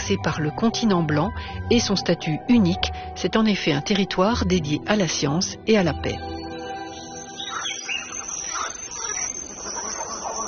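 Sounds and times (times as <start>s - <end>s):
speech: 0.1s - 6.3s
bird chirps and calls in tropical rainforest: 6.4s - 10.4s
insect din in tropical rainforest: 6.4s - 10.4s.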